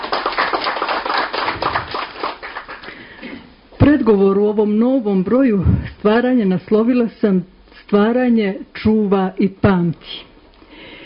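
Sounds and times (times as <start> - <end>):
audience applause for guest speakers at a literary evening: 0.0 - 3.1
speech: 4.0 - 10.3.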